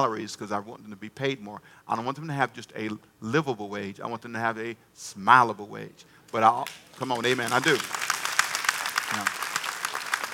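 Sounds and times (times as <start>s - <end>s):
speech: 0.0s - 8.0s, 9.1s - 9.4s
audience applause: 6.6s - 10.3s.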